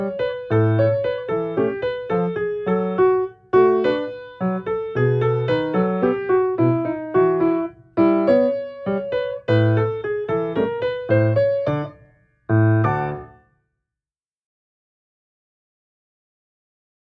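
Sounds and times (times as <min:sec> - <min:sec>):
piano exercises: 0:00.0 - 0:13.4.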